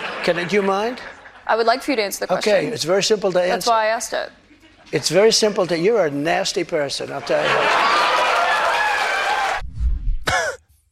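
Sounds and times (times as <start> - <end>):
crowd laughing: 0.0 - 1.8, 7.1 - 9.5
speech: 0.2 - 8.1
crowd hooting: 7.4 - 9.6.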